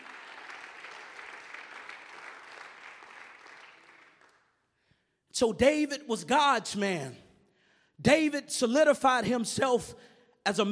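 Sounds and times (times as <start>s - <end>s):
audience clapping hands: 0.0s - 4.8s
speech: 5.4s - 7.2s, 8.0s - 10.7s.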